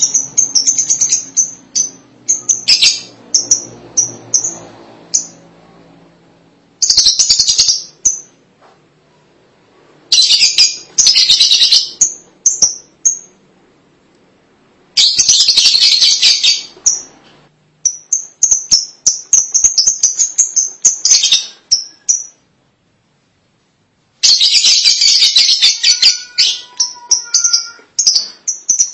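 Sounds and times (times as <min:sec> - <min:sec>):
lovebird chirps and chatter: 0:00.0 - 0:05.4, 0:06.8 - 0:08.3, 0:10.1 - 0:13.3, 0:15.0 - 0:17.1, 0:17.9 - 0:22.4, 0:24.2 - 0:28.9.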